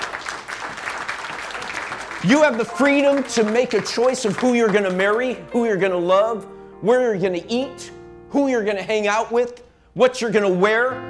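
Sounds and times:
crowd applauding: 0:00.0 - 0:05.5
speech: 0:02.2 - 0:11.0.

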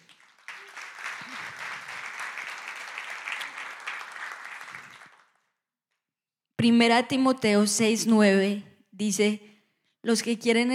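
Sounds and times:
audience applause: 0:00.0 - 0:05.4
speech: 0:06.6 - 0:10.7.

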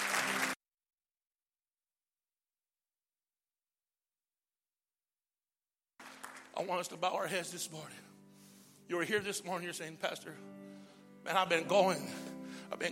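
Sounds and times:
audience clapping: 0:00.0 - 0:00.6, 0:06.0 - 0:07.0
speech: 0:06.6 - 0:08.1, 0:08.9 - 0:12.9.

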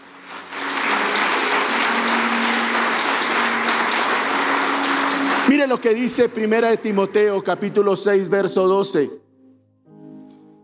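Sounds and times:
applause: 0:00.0 - 0:07.2
speech: 0:05.6 - 0:09.2.

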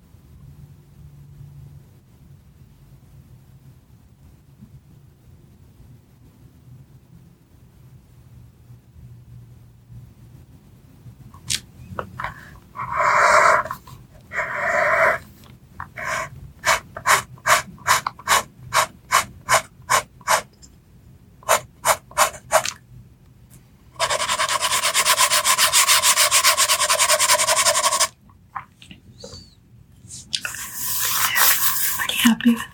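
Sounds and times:
pencil scratching and tracing on paper: 0:12.3 - 0:20.5, 0:21.4 - 0:22.7, 0:24.0 - 0:28.1, 0:30.5 - 0:32.1.

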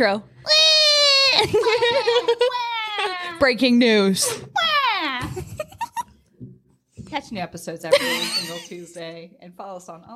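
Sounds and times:
speech: 0:00.0 - 0:00.6, 0:01.4 - 0:04.6, 0:07.1 - 0:10.1
baby crying: 0:00.4 - 0:03.4
laughter: 0:01.3 - 0:03.4, 0:07.9 - 0:08.9.

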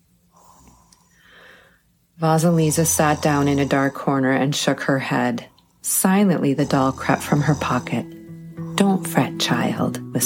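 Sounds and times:
snoring: 0:00.3 - 0:01.2, 0:02.4 - 0:09.2
speech: 0:02.2 - 0:08.2, 0:09.0 - 0:10.2.

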